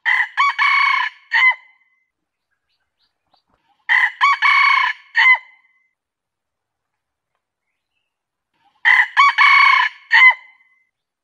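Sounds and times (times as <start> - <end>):
junglefowl crowing: 0.0 - 1.6, 3.9 - 5.5, 8.8 - 10.5.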